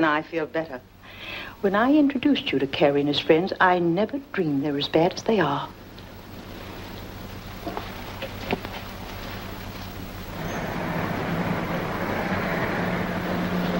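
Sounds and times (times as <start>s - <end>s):
speech: 0.0s - 5.8s
police car passing slowly by a house: 10.3s - 13.7s.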